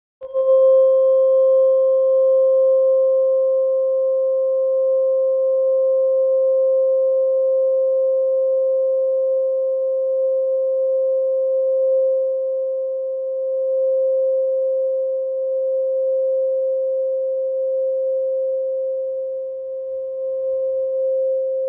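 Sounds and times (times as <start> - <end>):
528 Hz therapeutic tuning fork tone: 0.2 - 21.6.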